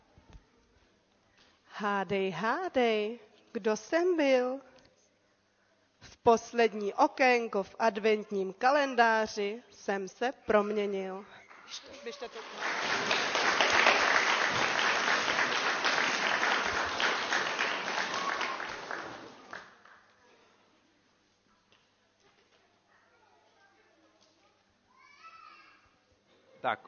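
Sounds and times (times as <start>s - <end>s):
speech: 1.8s - 4.7s, 6.2s - 13.3s, 26.6s - 26.8s
audience applause: 11.6s - 20.0s.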